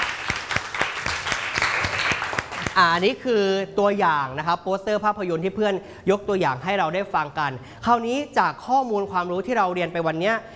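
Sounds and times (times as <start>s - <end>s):
classroom applause: 0.0s - 2.9s
speech: 2.8s - 10.5s.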